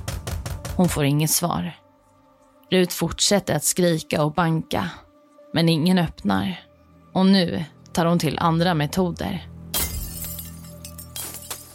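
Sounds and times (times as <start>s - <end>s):
speech: 0.8s - 1.8s, 2.7s - 9.5s
glass shattering as a car is smashed: 9.7s - 11.7s.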